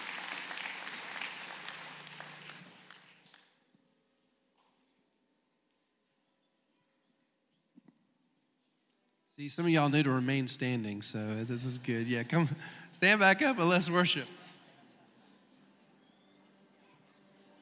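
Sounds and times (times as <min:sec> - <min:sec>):
audience applauding: 0:00.0 - 0:03.7
speech: 0:09.4 - 0:14.4.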